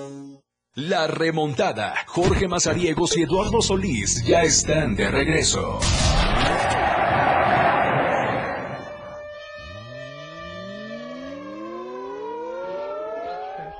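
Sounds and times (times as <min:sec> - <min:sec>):
speech: 0:00.8 - 0:06.8
air raid siren: 0:08.0 - 0:13.7.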